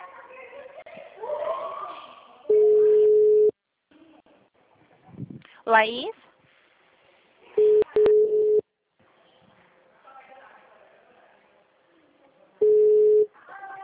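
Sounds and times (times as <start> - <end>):
phone tones after a dropped call: 2.5 - 3.5, 7.6 - 8.6, 12.6 - 13.3
speech: 5.7 - 6.2.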